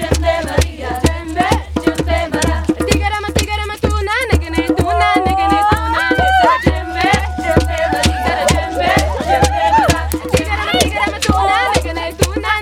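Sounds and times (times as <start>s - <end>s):
people chanting in California: 0.0s - 2.7s, 4.8s - 12.6s
djembe drumming in California: 0.0s - 12.6s
laughter: 4.8s - 11.9s.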